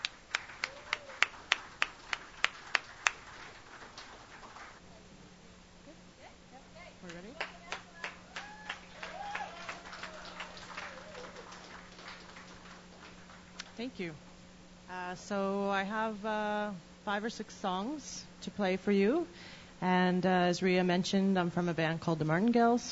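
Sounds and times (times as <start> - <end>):
audience clapping to welcome a performer at a songwriters' stage night: 0.0 - 4.8, 7.0 - 13.8
speech: 13.8 - 14.3, 14.9 - 22.9.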